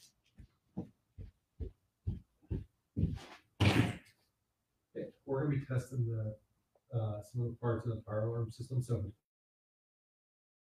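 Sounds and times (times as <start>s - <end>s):
knocking on a hotel room door: 1.6s - 3.2s
speech: 5.3s - 9.2s.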